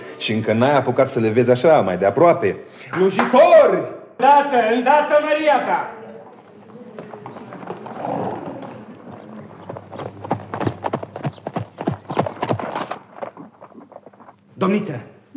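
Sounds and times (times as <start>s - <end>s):
speech: 0.2s - 6.0s, 14.6s - 15.1s
tall horse's hooves clip-clopping: 6.3s - 14.4s.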